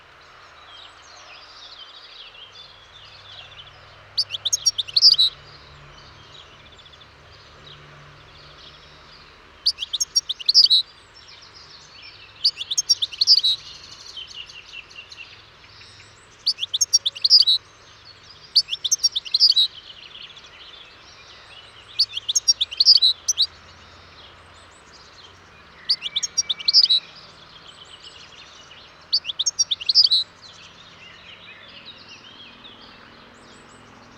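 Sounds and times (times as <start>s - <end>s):
European goldfinch twittering: 4.2s - 5.4s, 9.6s - 10.8s, 12.4s - 13.8s, 16.4s - 17.6s, 18.5s - 19.7s, 21.9s - 23.6s, 25.8s - 27.1s, 29.1s - 30.6s.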